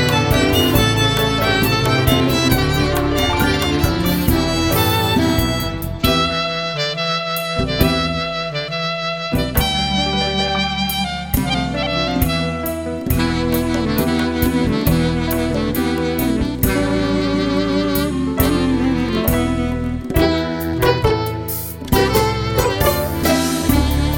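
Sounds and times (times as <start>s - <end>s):
clarinet: 0.0s - 24.1s
saxophone: 0.0s - 24.1s.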